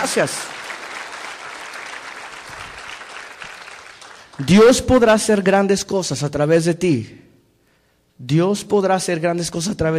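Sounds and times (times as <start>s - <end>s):
speech: 0.0s - 0.6s, 4.4s - 7.2s, 8.2s - 9.9s
audience applauding: 0.0s - 5.2s.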